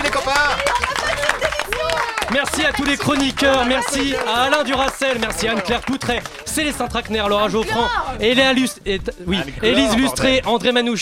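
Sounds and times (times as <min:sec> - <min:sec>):
studio audience applauding: 0:00.0 - 0:08.0
speech: 0:02.4 - 0:10.9.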